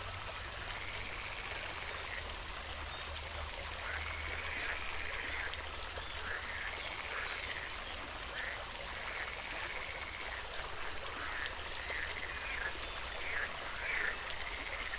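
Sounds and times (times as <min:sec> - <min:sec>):
wind chimes: 0:00.0 - 0:01.3, 0:02.9 - 0:05.2, 0:14.1 - 0:14.9
fountain: 0:00.0 - 0:14.9
frogs croaking: 0:00.2 - 0:14.9.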